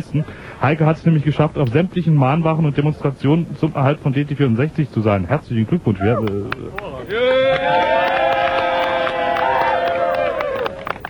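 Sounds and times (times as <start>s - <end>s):
speech: 0.0s - 8.1s
people clapping in the studio: 6.2s - 11.0s
sustained vocal cheer: 7.1s - 10.9s.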